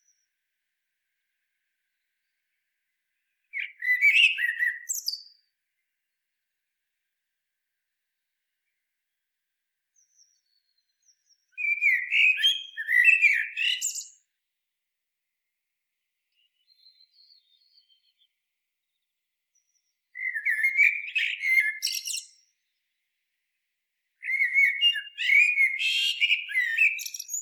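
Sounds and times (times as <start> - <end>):
Eurasian blackbird singing: 3.5 - 5.5, 10.0 - 14.2, 16.3 - 22.8, 24.2 - 27.3.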